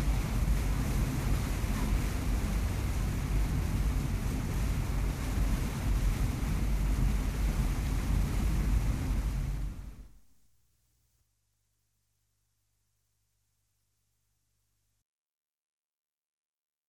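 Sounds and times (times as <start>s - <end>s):
ship cruising at sea: 0.0s - 10.2s.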